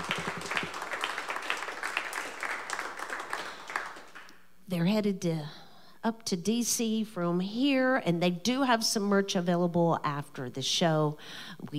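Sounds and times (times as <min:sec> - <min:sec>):
audience applause: 0:00.0 - 0:04.3
speech: 0:04.7 - 0:11.7.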